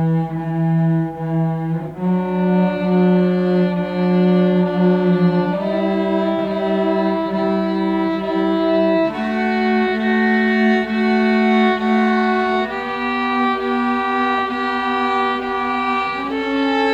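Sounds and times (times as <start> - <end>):
strings playing a D Major scale round: 0.0 - 16.9.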